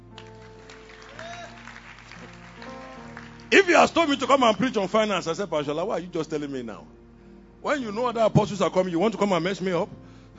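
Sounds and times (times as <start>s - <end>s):
audience clapping: 0.0s - 4.7s
speech: 3.5s - 7.0s, 7.6s - 10.3s.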